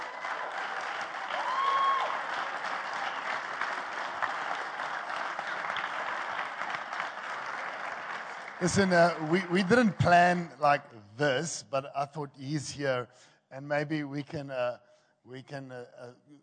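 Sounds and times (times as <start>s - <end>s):
audience applause: 0.0s - 10.7s
speech: 8.6s - 16.4s.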